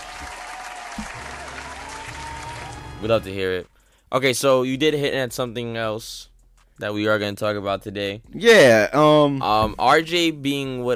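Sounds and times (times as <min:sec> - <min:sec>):
group clapping: 0:00.0 - 0:03.4
speech: 0:03.0 - 0:10.9.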